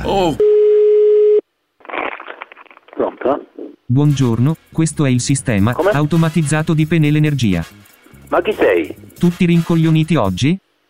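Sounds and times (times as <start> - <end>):
speech: 0.0 - 0.5, 3.0 - 10.6
telephone busy tone after dropped line: 0.4 - 1.4
crackly garbled telephone line noise: 1.8 - 3.8.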